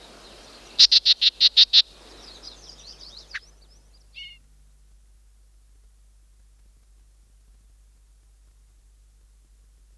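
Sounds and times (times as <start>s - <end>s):
yellow-breasted chat singing: 0.0s - 4.4s.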